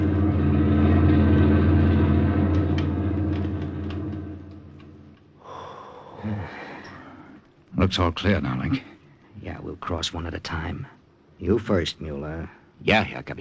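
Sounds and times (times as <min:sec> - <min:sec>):
army lorry rumbling past on highway: 0:00.0 - 0:05.4
quieter rattle: 0:00.0 - 0:05.4
speech: 0:07.8 - 0:13.3.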